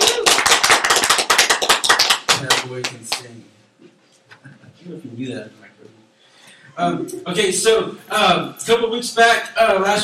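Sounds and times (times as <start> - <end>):
crowd applause: 0.0 - 2.6
speech: 2.4 - 3.6, 4.4 - 6.0, 6.8 - 10.0.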